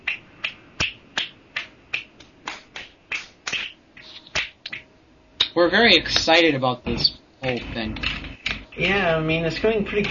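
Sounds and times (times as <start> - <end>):
finger snapping as applause: 0.0 - 4.8
speech: 5.6 - 8.2, 8.8 - 10.0.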